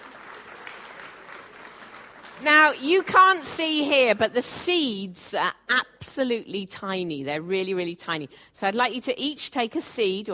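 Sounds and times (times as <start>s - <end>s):
audience clapping: 0.0s - 3.8s
speech: 2.4s - 10.3s.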